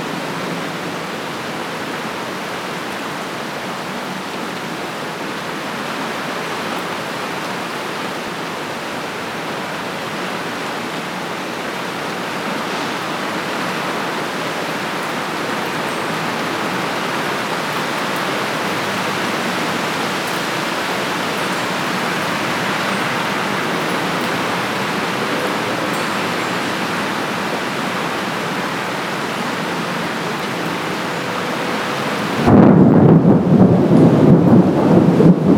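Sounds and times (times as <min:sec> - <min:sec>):
rain: 0:00.0 - 0:35.5
thunder: 0:32.4 - 0:35.5.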